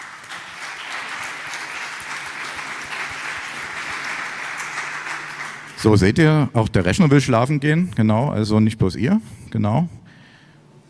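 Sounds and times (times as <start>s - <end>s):
audience clapping: 0.0s - 6.2s
speech: 5.8s - 10.0s.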